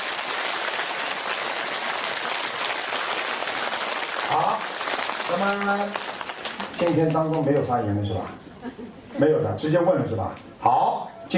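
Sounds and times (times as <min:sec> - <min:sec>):
audience applause: 0:00.0 - 0:07.6
speech: 0:05.3 - 0:11.3.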